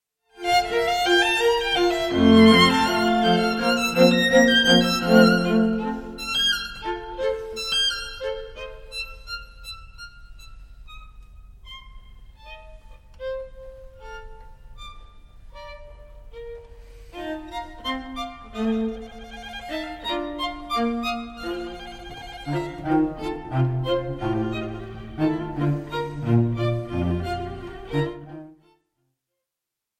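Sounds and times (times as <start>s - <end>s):
string quartet playing in D major: 0.4s - 9.8s, 11.7s - 28.6s.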